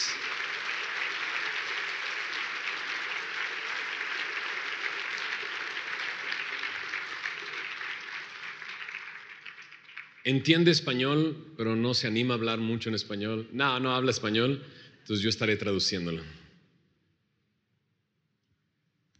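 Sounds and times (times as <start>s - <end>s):
audience applauding to welcome a guest at a Spanish-language event: 0.0s - 10.6s
speech: 10.2s - 16.4s.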